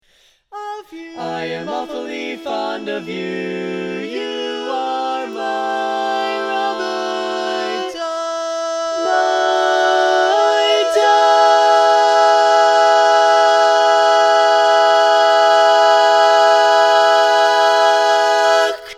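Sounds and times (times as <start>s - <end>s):
barbershop quartet singing all parts: 0.6s - 18.9s.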